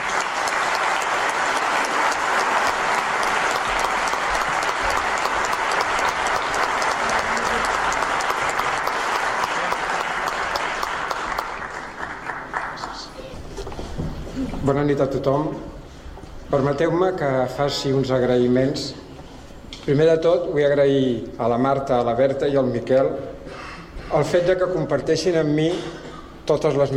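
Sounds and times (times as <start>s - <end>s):
audience applause: 0.0s - 13.3s
speech: 14.7s - 15.7s, 16.5s - 19.0s, 19.9s - 23.3s, 24.1s - 26.9s.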